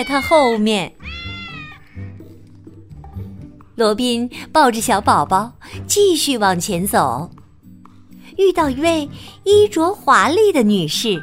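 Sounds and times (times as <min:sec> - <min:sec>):
speech: 0:00.0 - 0:01.0, 0:03.8 - 0:07.4, 0:08.4 - 0:11.2
cats meowing: 0:00.0 - 0:02.2.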